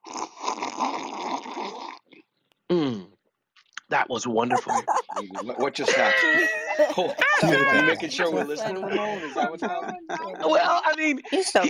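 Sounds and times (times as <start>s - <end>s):
person sipping Colombian coffee: 0.0s - 2.3s
speech: 3.9s - 11.6s
laughter: 4.2s - 11.6s.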